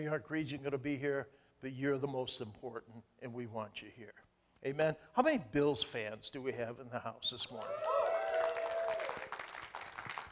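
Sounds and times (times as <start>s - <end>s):
speech: 0.0s - 8.0s
audience clapping and cheering: 7.6s - 10.2s.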